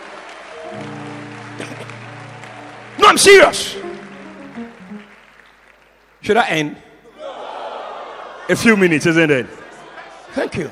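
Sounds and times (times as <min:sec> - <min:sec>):
audience clapping hands: 0:00.0 - 0:06.7
speech: 0:03.1 - 0:03.8, 0:06.2 - 0:06.8, 0:08.5 - 0:09.6, 0:10.3 - 0:10.6
laughter: 0:07.2 - 0:10.6.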